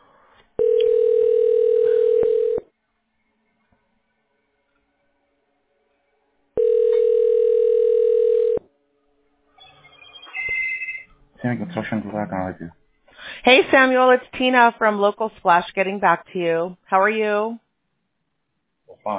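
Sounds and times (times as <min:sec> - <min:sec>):
telephone ringback tones while call connects: 0:00.6 - 0:02.6, 0:06.6 - 0:08.6
speech: 0:11.5 - 0:12.8, 0:13.4 - 0:17.6.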